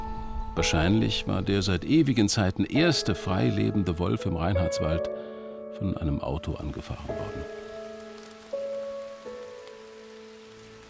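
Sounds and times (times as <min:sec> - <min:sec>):
speech: 0:00.6 - 0:07.6
rain falling on a forest pond: 0:06.5 - 0:10.8.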